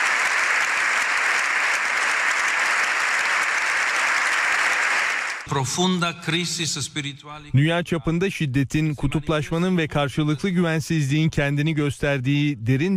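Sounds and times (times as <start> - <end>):
standing ovation applause in parliament hall: 0.0 - 5.5
speech: 5.5 - 12.9.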